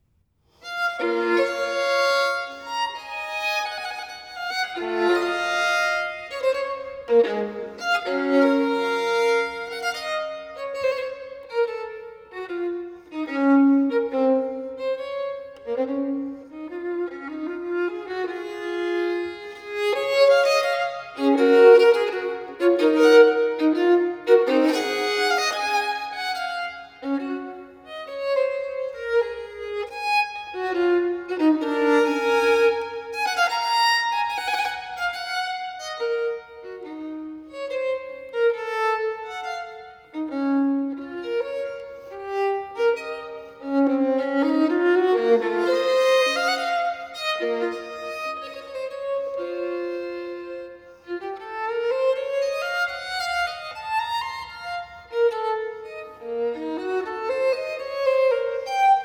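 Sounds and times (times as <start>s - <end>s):
solo violin partita: 0.0s - 59.0s.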